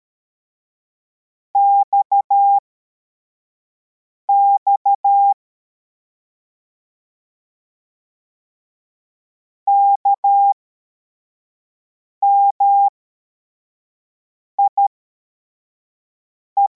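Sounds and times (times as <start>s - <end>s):
CW morse code beeps: 1.6s - 2.6s, 4.3s - 5.3s, 9.7s - 10.5s, 12.3s - 12.9s, 16.6s - 16.7s.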